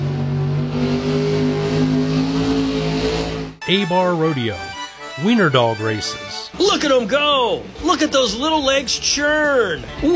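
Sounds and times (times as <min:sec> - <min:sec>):
heavy truck engine revving at high load at a truck pull: 0:00.0 - 0:03.7
speech: 0:03.7 - 0:10.1.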